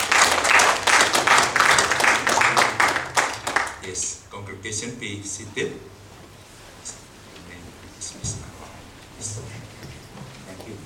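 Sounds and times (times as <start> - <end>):
applause: 0.0 - 3.9
speech: 3.9 - 6.0.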